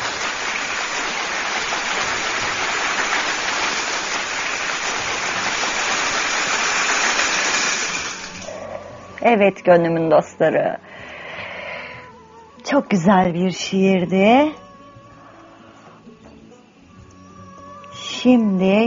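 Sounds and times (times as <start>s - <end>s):
big crowd applauding: 0.0s - 8.5s
speech: 9.3s - 10.9s, 12.6s - 14.6s, 18.2s - 18.8s.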